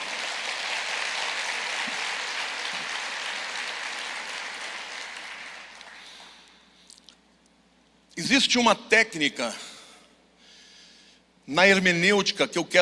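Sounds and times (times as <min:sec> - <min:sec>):
audience applauding: 0:00.0 - 0:06.5
speech: 0:08.2 - 0:09.7, 0:11.5 - 0:12.8.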